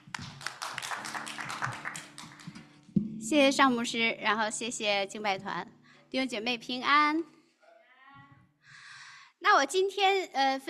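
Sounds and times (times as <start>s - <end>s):
audience applause: 0.0s - 2.8s
speech: 3.3s - 7.4s, 9.5s - 10.6s.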